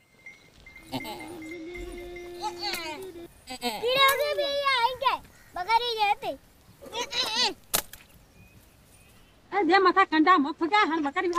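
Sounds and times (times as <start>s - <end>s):
goat bleating: 0.8s - 4.3s
speech: 5.6s - 7.6s, 9.6s - 11.3s.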